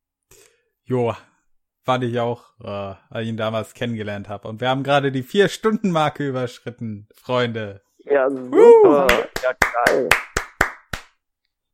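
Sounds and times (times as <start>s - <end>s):
speech: 0.9s - 10.3s
applause, hands clapping: 8.9s - 11.2s.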